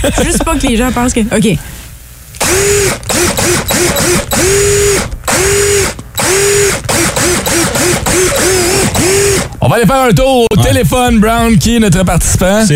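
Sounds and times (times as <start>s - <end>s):
speech: 0.0s - 1.8s, 2.6s - 6.9s, 9.6s - 12.7s
power drill whirring out a tune: 2.4s - 9.6s.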